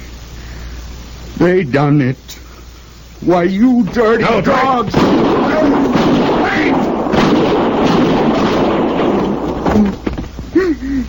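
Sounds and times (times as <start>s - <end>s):
speech: 1.4s - 2.3s, 3.2s - 5.9s
rough roaring noise: 3.8s - 10.4s
revolver gunshots: 3.9s - 10.0s.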